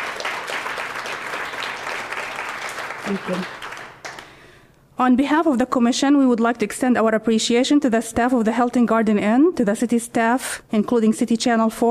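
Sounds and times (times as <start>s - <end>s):
round of applause for an honoree at a city commission awards ceremony in a Hilton Garden Inn: 0.0s - 4.4s
speech: 3.0s - 3.6s, 5.0s - 11.8s.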